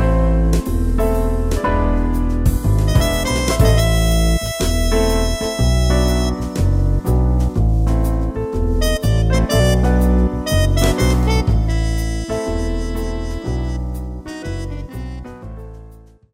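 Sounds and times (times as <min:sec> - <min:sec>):
modern swing and jazz ballad: 0:00.0 - 0:16.2.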